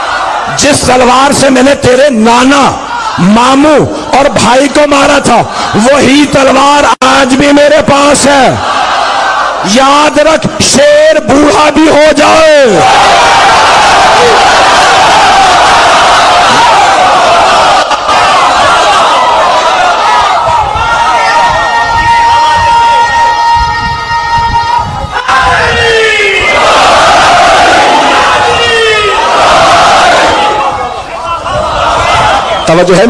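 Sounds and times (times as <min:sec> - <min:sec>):
crowd shouting religious slogans at a religious gathering: 0:00.0 - 0:00.6, 0:02.8 - 0:04.1, 0:05.4 - 0:06.1, 0:08.4 - 0:09.7, 0:12.7 - 0:32.7
bursts of yelling: 0:00.0 - 0:33.0
speech: 0:00.5 - 0:08.9, 0:09.6 - 0:14.9, 0:32.7 - 0:33.0.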